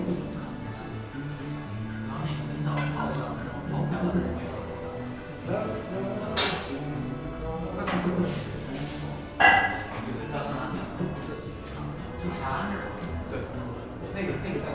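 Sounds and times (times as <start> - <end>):
murmur of overlapping conversation in a café beside Ditan in Beijing: 0.0 - 14.7
sharp clinks of cups or dishes: 9.2 - 10.1.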